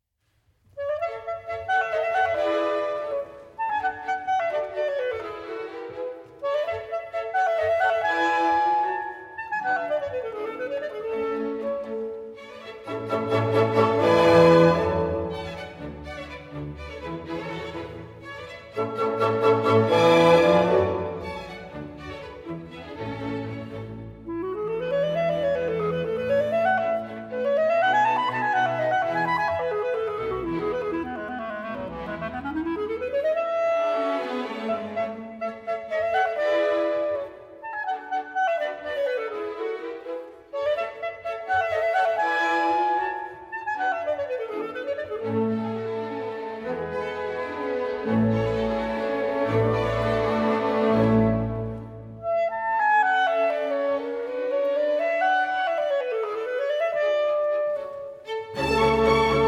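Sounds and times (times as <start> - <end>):
clarinet concerto: 0.6 - 59.4.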